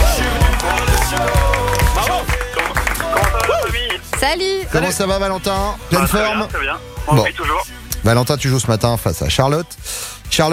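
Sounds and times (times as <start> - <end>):
studio audience applause on a French morning radio game show: 0.0 - 4.4
rhythmic thumps: 0.0 - 10.0
speech: 4.2 - 10.5.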